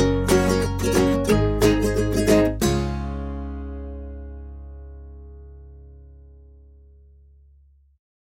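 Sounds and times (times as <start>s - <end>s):
happy summer background music: 0.0s - 5.3s.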